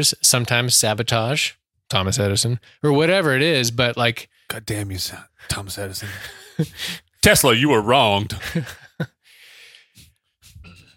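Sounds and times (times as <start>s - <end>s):
speech: 0.0s - 9.1s
laughter: 6.0s - 7.0s, 8.3s - 9.2s
person sniffing: 9.3s - 10.9s.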